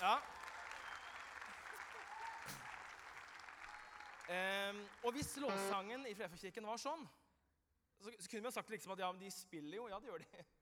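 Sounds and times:
speech: 0:00.0 - 0:00.4, 0:04.3 - 0:07.2, 0:08.0 - 0:10.6
applause: 0:00.0 - 0:05.5.

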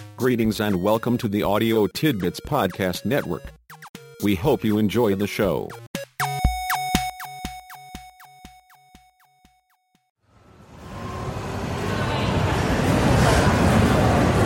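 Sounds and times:
speech: 0:00.2 - 0:03.6, 0:04.2 - 0:05.9
crowd babble at a carnival: 0:11.3 - 0:14.4.

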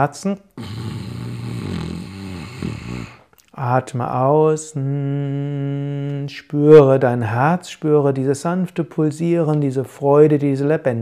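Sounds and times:
speech: 0:00.0 - 0:00.8, 0:03.0 - 0:11.0
snoring inhale: 0:00.6 - 0:03.3.

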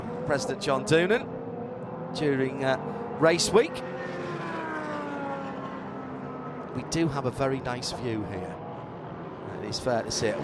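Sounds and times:
race car engine: 0:00.0 - 0:10.4
speech: 0:00.3 - 0:01.4, 0:02.1 - 0:04.2, 0:06.8 - 0:08.6, 0:09.6 - 0:10.4.

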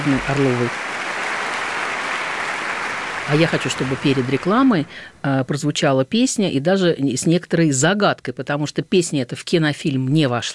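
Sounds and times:
speech: 0:00.0 - 0:01.0, 0:03.3 - 0:10.5
crowd applauding: 0:00.0 - 0:05.1.

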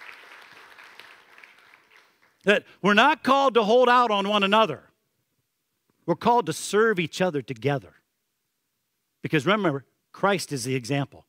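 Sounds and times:
audience hand clapping: 0:00.0 - 0:02.5
speech: 0:02.4 - 0:04.9, 0:06.1 - 0:08.0, 0:09.2 - 0:11.2.

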